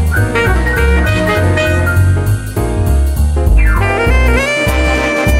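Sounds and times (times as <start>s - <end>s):
big band ringtone: 0.1s - 2.6s, 3.5s - 5.2s.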